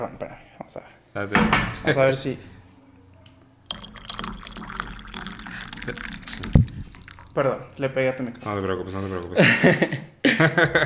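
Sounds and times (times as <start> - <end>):
speech: 0.0 - 2.5, 5.8 - 6.2, 7.4 - 10.8
coffee being poured: 3.7 - 9.6
laughter: 9.3 - 10.8.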